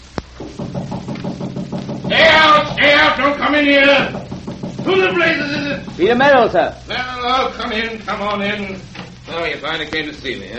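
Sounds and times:
knocking on a door: 0.4 - 6.4
speech: 3.2 - 4.2, 4.8 - 10.5.

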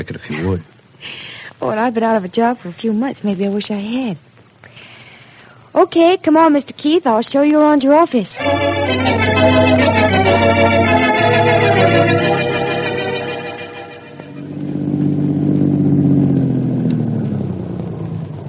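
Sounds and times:
speech: 0.0 - 4.3, 5.8 - 12.5
car engine droning as the car drives: 8.9 - 18.4.

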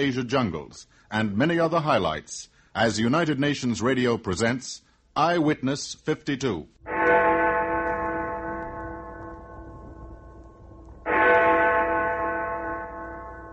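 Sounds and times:
speech: 0.0 - 6.8
clock tower bell chiming: 6.9 - 13.5.

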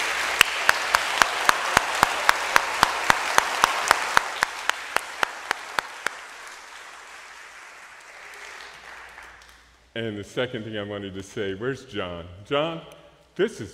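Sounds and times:
church congregation applauding young people received into church: 0.0 - 9.8
speech: 10.0 - 13.7.

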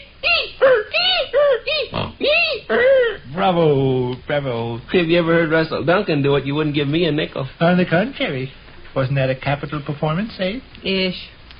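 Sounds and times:
man imitating a head caught in a revolving door: 0.2 - 3.4
speech: 3.4 - 11.4.

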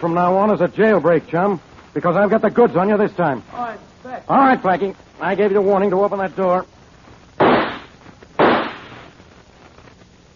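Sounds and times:
speech: 0.0 - 6.8
gunshots fired at a door: 7.4 - 9.2.

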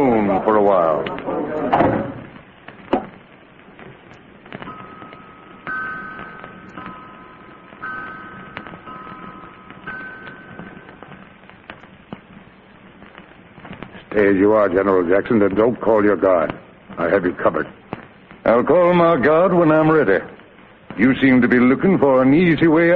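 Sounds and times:
speech: 0.0 - 1.8, 14.2 - 17.8, 18.4 - 20.3, 21.0 - 22.9
faint high humming tones: 0.0 - 22.9
door shutting: 1.2 - 2.3.

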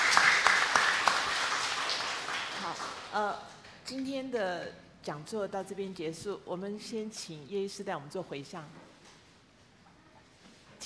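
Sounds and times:
audience applause: 0.0 - 3.1
speech: 3.1 - 8.8.

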